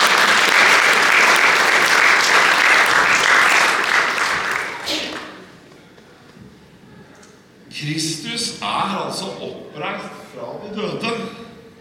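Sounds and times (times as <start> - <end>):
audience applauding: 0.0 - 5.5
speech: 7.8 - 11.4.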